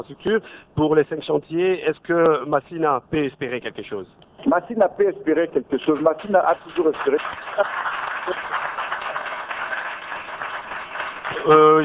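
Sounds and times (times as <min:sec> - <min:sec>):
speech: 0:00.0 - 0:08.5, 0:11.4 - 0:11.8
audience applause: 0:06.0 - 0:11.8.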